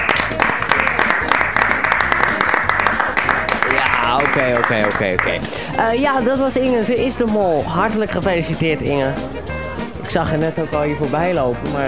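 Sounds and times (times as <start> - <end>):
people clapping: 0.0 - 5.6
murmur of voices: 3.6 - 11.8
speech: 4.4 - 9.5, 10.1 - 11.8.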